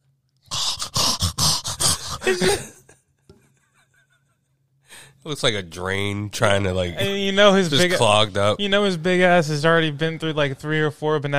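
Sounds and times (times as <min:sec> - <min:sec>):
labored wheezing breathing: 0:00.4 - 0:02.9, 0:04.8 - 0:05.2
speech: 0:02.3 - 0:02.7, 0:05.2 - 0:11.3.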